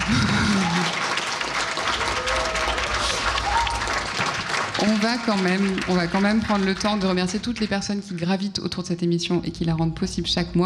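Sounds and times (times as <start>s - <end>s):
live audience applause: 0.0s - 8.3s
speech: 4.9s - 10.6s.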